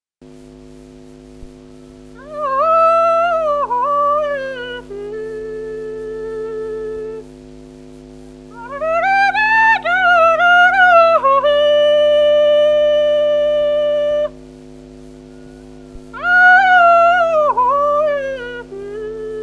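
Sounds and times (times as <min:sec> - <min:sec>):
kauklåt herding call tune: 0:01.8 - 0:07.2, 0:08.6 - 0:14.4, 0:15.2 - 0:19.4.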